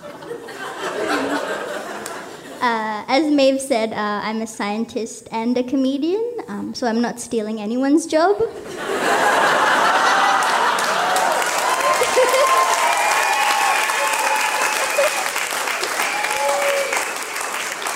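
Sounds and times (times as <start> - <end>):
audience chuckling: 0.0 - 2.6, 8.6 - 12.9, 14.6 - 15.5
speech: 2.6 - 9.3
audience applause: 9.2 - 17.9.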